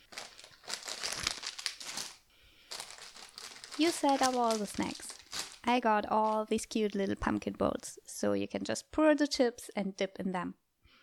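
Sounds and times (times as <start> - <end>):
crinkly plastic bag rustling while items are pulled out: 0.0 - 7.5
speech: 3.8 - 10.6.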